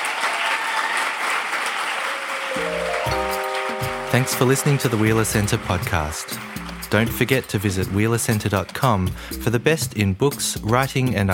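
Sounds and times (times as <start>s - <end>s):
audience round of applause in Melbourne: 0.0s - 8.8s
speech: 4.2s - 11.3s.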